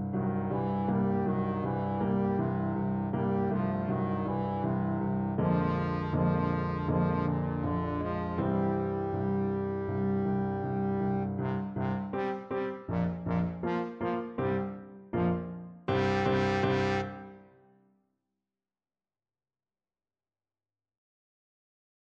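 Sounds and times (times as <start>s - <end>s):
blues trombone: 0.4s - 17.4s.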